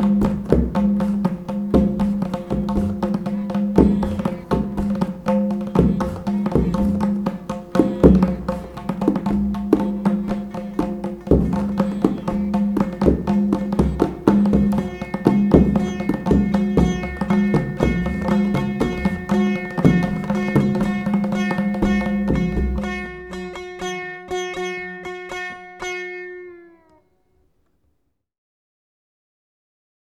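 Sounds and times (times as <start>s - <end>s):
tabla playing: 0.0s - 27.1s
sitar drone: 0.0s - 27.3s.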